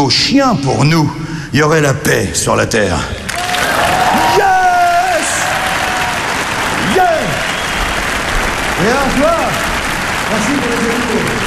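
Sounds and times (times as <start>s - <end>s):
speech: 0.0s - 3.2s, 8.8s - 9.7s, 10.3s - 11.4s
audience applause: 3.3s - 11.4s.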